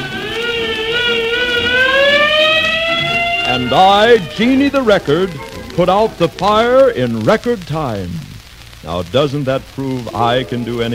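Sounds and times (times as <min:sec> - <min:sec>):
fire engine siren: 0:00.0 - 0:06.2
speech: 0:03.7 - 0:10.9.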